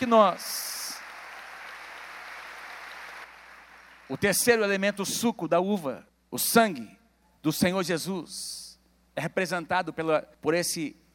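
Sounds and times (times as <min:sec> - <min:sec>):
speech: 0:00.0 - 0:00.7, 0:04.1 - 0:08.6, 0:09.2 - 0:11.0
audience applause: 0:00.0 - 0:04.2.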